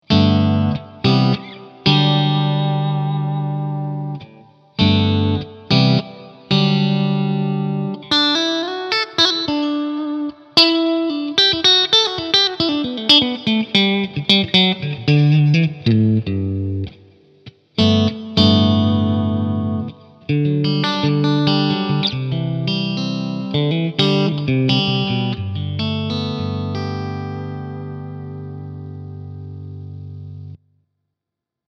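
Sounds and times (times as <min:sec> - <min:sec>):
clean EF86 valve amplifier tone: 0:00.0 - 0:30.6.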